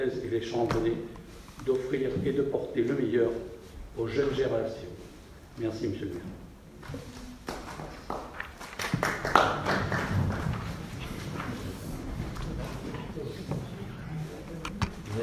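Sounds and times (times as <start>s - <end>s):
speech: 0.0s - 7.2s
muffled scattered handclaps: 7.4s - 11.6s
low murmur of voices: 10.1s - 15.2s.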